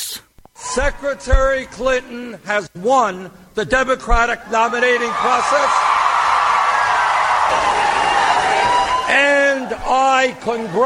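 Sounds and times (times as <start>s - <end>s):
speech: 0.8s - 5.8s, 7.5s - 8.0s, 9.1s - 10.8s
crowd applause at a rally: 5.0s - 10.8s.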